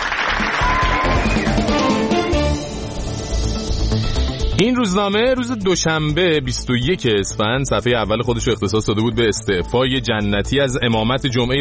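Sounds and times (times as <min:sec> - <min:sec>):
applause: 0:00.0 - 0:02.4
music: 0:00.0 - 0:11.5
speech: 0:04.6 - 0:11.5.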